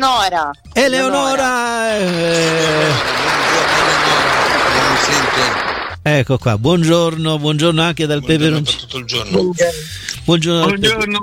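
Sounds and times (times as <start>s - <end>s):
speech: 0.0s - 11.2s
audience applause: 1.5s - 6.0s
laughter: 1.6s - 6.0s, 8.2s - 10.0s.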